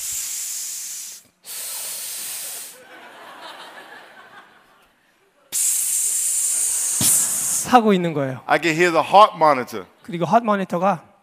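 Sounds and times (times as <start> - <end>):
voice imitating hospital respirator breathing hiss: 0.0 - 2.8, 5.5 - 7.7
laughter: 2.7 - 5.0
speech: 7.6 - 11.1.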